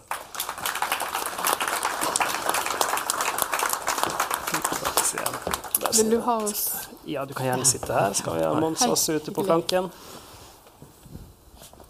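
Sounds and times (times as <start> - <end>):
audience applause: 0.0 - 6.5
speech: 6.0 - 10.2.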